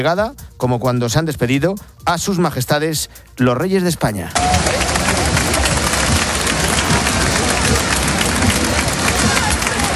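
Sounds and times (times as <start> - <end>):
speech: 0.0 - 4.8
large crowd applause and cheering at parade: 4.4 - 9.9.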